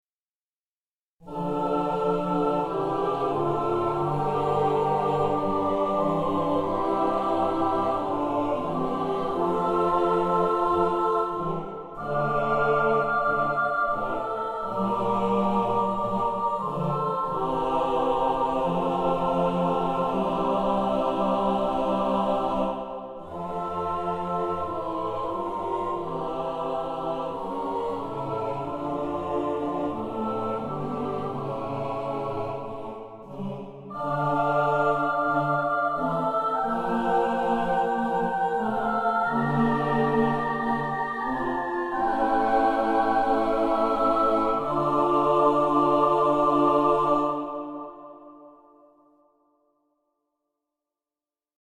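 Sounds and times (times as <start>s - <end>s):
choir singing: 1.2s - 49.2s.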